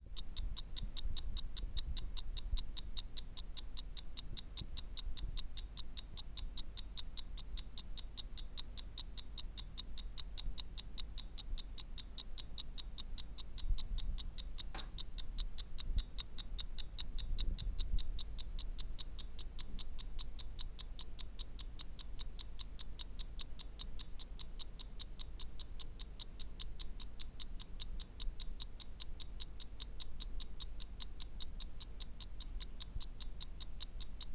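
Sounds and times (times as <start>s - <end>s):
pocket watch: 0.0s - 34.3s.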